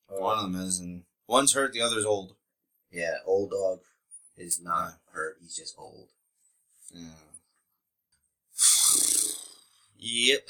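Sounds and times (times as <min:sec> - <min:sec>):
speech: 0:00.2 - 0:06.2, 0:06.9 - 0:07.3, 0:10.0 - 0:10.4
man imitating a horse whinny and snort: 0:08.6 - 0:09.7.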